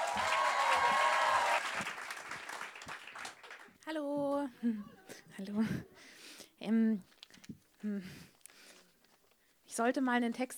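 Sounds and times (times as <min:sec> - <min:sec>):
poetry slam audience clapping: 0:00.0 - 0:03.8
speech: 0:03.9 - 0:07.1, 0:07.8 - 0:08.3, 0:09.8 - 0:10.5.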